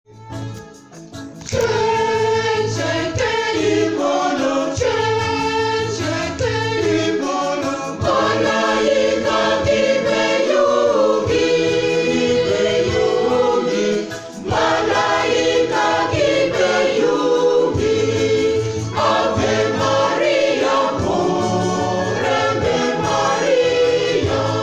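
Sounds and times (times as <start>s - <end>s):
choir singing: 1.5s - 24.6s.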